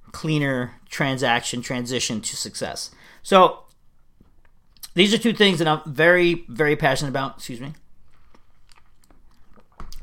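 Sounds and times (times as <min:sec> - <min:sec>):
speech: 0:00.2 - 0:03.6, 0:05.0 - 0:07.8
speaker drinking water: 0:08.0 - 0:10.0.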